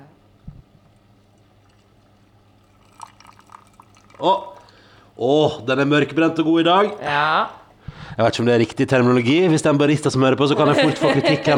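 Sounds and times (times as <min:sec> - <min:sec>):
coffee being poured from a pot: 0:01.3 - 0:05.0
speech: 0:04.2 - 0:04.5, 0:05.2 - 0:07.6, 0:08.2 - 0:11.5
laughter: 0:10.5 - 0:11.5.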